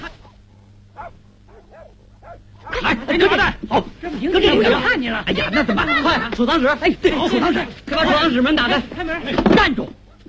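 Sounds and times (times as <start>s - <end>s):
dog barking: 0.0s - 3.0s, 10.0s - 10.2s
low hum: 0.0s - 4.4s
speech: 3.1s - 10.0s
laughter: 4.4s - 7.5s.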